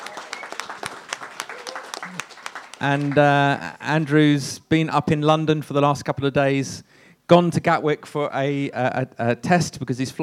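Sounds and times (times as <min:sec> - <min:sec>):
audience applause welcoming a guest: 0:00.0 - 0:03.4
speech: 0:02.8 - 0:10.2.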